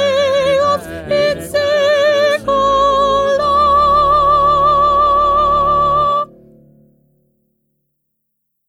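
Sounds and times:
first soprano singing: 0.0s - 6.4s.

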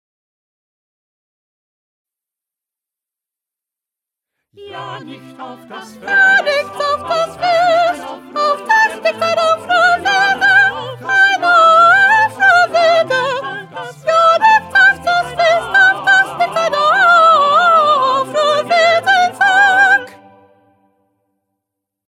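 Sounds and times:
second soprano singing: 4.6s - 20.6s.

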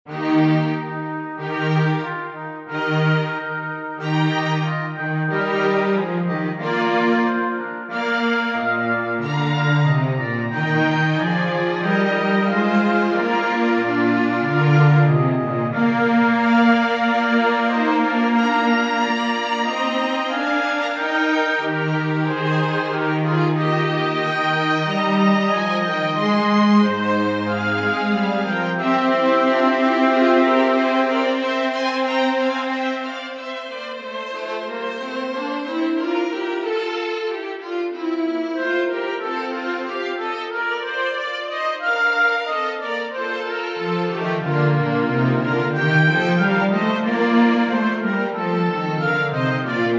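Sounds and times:
instrumental music: 0.1s - 49.9s.

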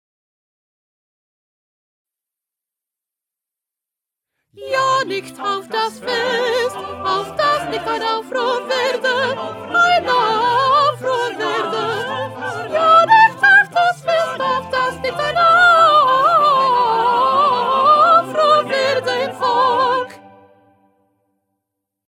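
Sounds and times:
first soprano singing: 4.6s - 20.6s.

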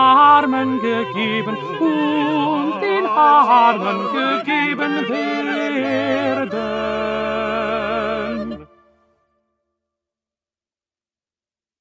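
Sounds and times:
tenor singing: 0.0s - 9.0s.

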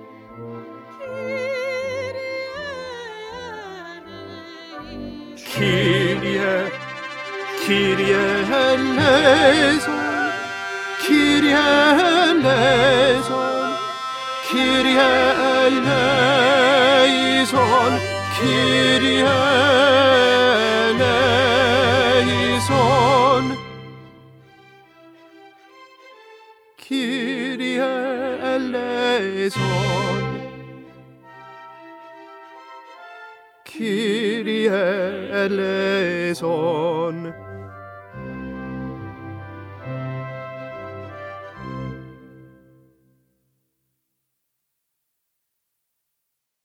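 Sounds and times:
tenor singing: 0.7s - 24.1s, 26.8s - 31.1s, 33.6s - 41.6s.

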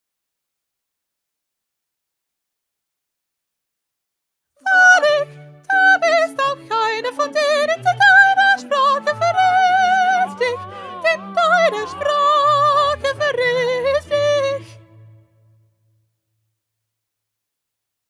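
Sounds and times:
soprano singing: 4.6s - 14.9s.

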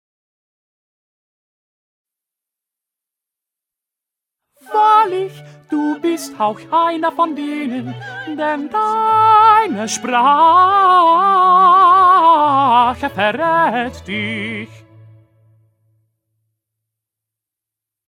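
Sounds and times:
tenor singing: 4.6s - 14.9s.

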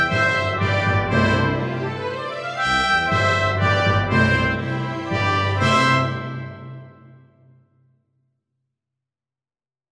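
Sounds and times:
instrumental music: 0.0s - 7.5s.

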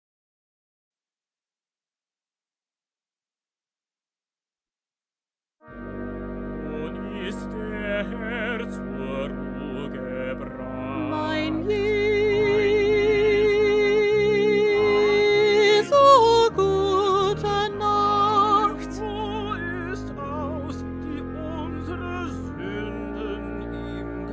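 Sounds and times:
soprano singing: 6.7s - 24.3s.

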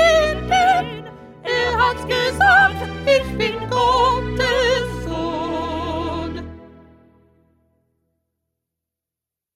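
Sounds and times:
first soprano singing: 0.0s - 7.1s.

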